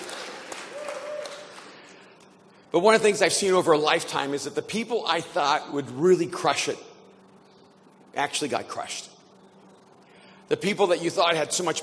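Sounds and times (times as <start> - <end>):
audience applause: 0.0 - 1.9
speech: 2.7 - 6.9, 8.2 - 9.1, 10.5 - 11.8.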